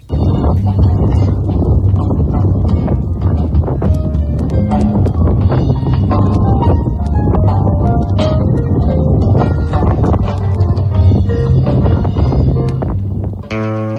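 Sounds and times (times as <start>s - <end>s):
musicians rehearsing: 0.0s - 13.9s
wind of Makronisos: 0.0s - 13.9s.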